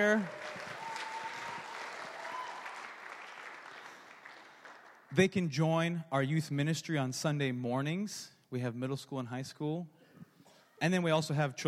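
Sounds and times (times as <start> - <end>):
speech: 0.0 - 0.4, 5.1 - 10.0, 10.8 - 11.6
audience clapping: 0.0 - 5.3.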